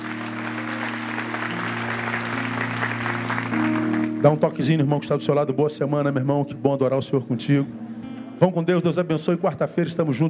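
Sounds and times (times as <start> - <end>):
audience applause: 0.0 - 4.4
speech: 4.2 - 7.8, 8.4 - 10.2.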